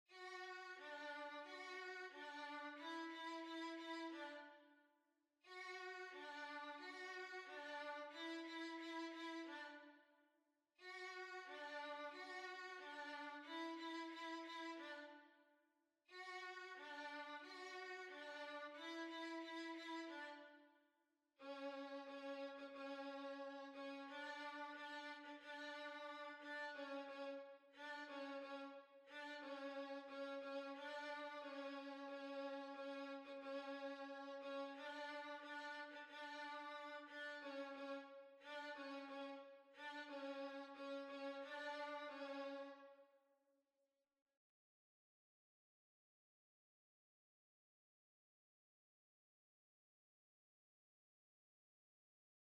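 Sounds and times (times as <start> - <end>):
violin: 0.1 - 4.7, 5.5 - 10.0, 10.8 - 15.3, 16.1 - 20.6, 21.4 - 42.9.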